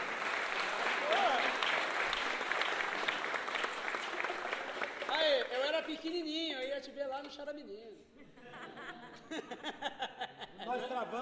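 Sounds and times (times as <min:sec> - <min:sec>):
audience applause: 0:00.0 - 0:06.0
laughter: 0:04.0 - 0:05.0, 0:08.2 - 0:11.1
speech: 0:05.9 - 0:11.1.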